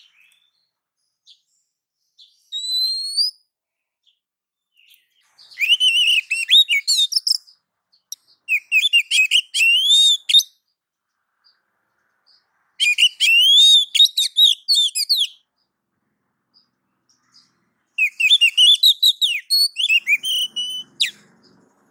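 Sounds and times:
female oriental magpie-robin giving a soft rising whistled call: 0:02.3 - 0:03.5, 0:05.2 - 0:07.6, 0:08.4 - 0:10.6, 0:12.3 - 0:15.5, 0:17.2 - 0:21.6.

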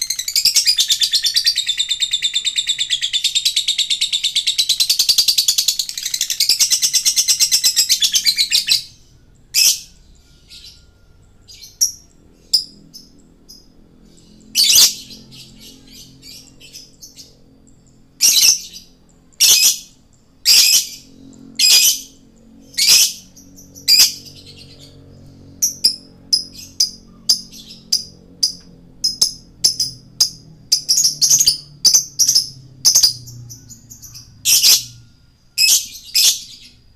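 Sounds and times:
male lovebird chirping vigorously: 0:00.0 - 0:36.9.

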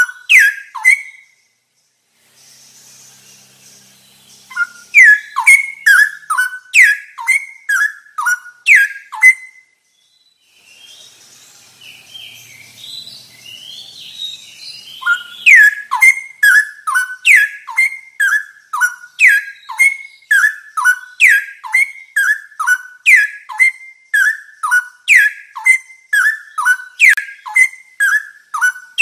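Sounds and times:
straw-headed bulbul singing: 0:00.0 - 0:28.9.

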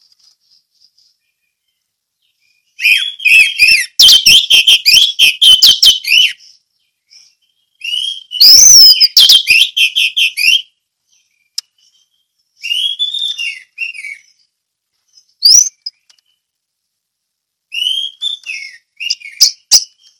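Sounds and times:
orange-headed thrush song: 0:02.5 - 0:06.4, 0:07.1 - 0:14.5, 0:15.3 - 0:16.5, 0:17.7 - 0:20.1.

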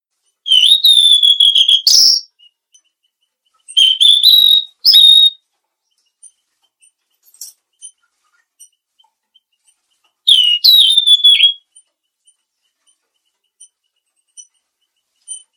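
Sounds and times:
mangrove blue flycatcher whistling: 0:00.5 - 0:02.6, 0:03.7 - 0:05.4, 0:10.3 - 0:11.7.

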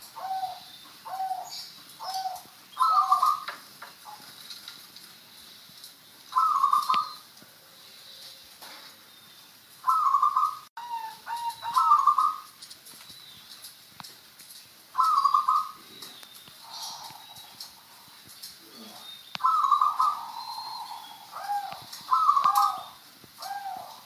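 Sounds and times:
zebra dove song: 0:00.0 - 0:04.4, 0:06.3 - 0:07.2, 0:09.8 - 0:12.6, 0:15.0 - 0:24.0.

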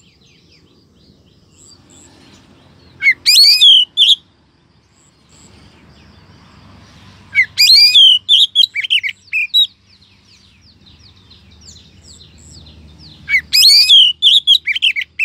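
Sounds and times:
Oriental magpie-robin rising whistle: 0:03.0 - 0:04.2, 0:07.3 - 0:09.7, 0:13.3 - 0:15.2.

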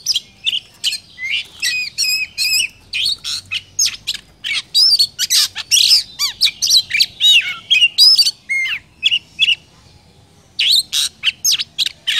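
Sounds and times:
Oriental magpie-robin singing: 0:00.0 - 0:09.8, 0:10.4 - 0:12.1.

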